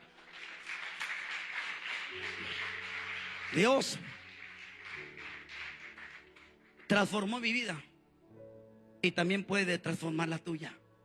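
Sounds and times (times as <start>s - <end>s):
audience clapping: 0.0s - 7.8s
speech: 3.5s - 4.2s, 6.9s - 7.9s, 9.0s - 10.8s.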